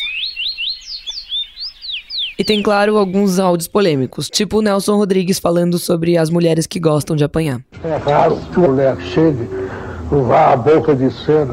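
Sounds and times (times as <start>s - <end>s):
birds singing: 0.0s - 5.5s
speech: 2.4s - 11.5s.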